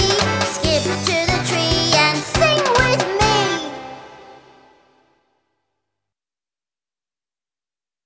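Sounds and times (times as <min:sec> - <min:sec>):
hello song: 0:00.0 - 0:05.3.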